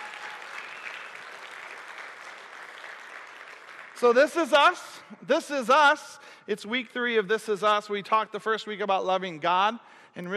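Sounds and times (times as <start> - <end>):
audience applause: 0.0 - 4.6
speech: 4.0 - 10.3.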